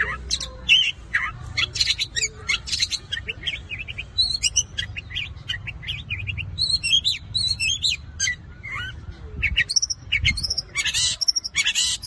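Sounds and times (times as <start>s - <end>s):
long-tailed shrike song: 0.0s - 12.0s.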